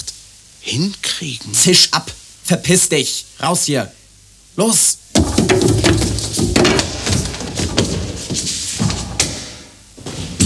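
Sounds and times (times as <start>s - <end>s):
speech: 0.6s - 4.0s, 4.6s - 5.8s, 6.4s - 7.0s
man falling down the stairs: 5.1s - 10.4s.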